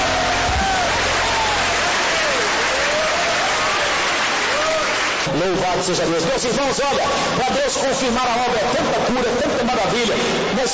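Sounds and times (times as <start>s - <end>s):
audience clapping hands: 0.0s - 6.0s
speech: 5.4s - 10.7s.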